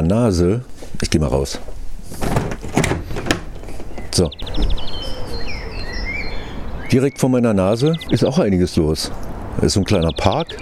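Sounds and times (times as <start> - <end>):
speech: 0.0 - 2.3, 4.2 - 5.0, 6.9 - 10.5
spring birds singing: 2.2 - 10.5.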